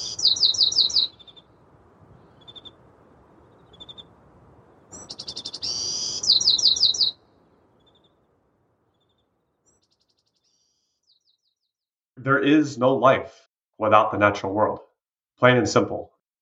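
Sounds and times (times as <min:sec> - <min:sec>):
cricket chirping: 0:00.0 - 0:10.1
dawn birdsong: 0:00.0 - 0:11.9
speech: 0:12.2 - 0:16.2.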